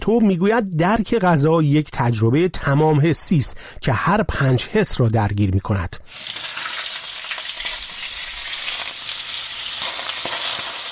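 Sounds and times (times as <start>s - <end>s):
speech: 0.0s - 6.5s
food frying in a hot pan: 6.1s - 10.9s.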